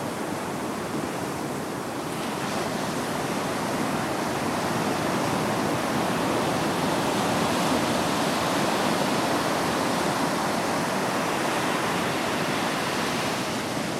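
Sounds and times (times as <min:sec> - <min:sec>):
ocean ambience: 0:00.0 - 0:13.9.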